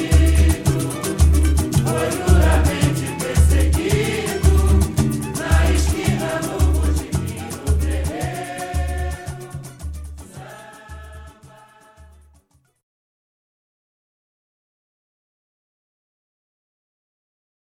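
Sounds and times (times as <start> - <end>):
samba music: 0.0 - 12.4.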